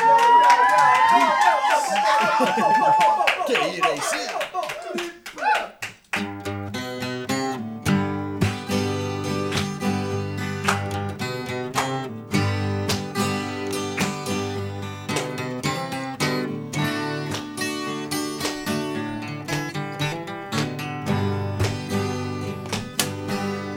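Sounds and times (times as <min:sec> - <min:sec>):
laughter: 0:00.0 - 0:05.8
group clapping hands: 0:00.0 - 0:06.6, 0:07.9 - 0:23.7
scattered voices: 0:01.1 - 0:05.6.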